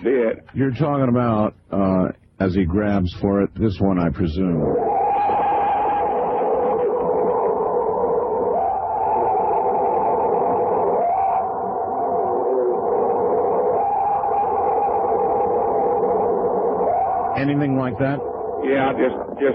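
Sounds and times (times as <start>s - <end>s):
speech: 0.1s - 4.8s, 17.4s - 19.5s
recording of a purported Bigfoot scream: 4.6s - 19.5s.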